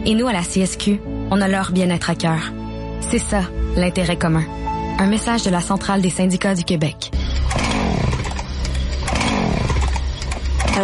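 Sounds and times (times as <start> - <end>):
speech: 0.0 - 7.2
chainsaw running: 7.2 - 10.8.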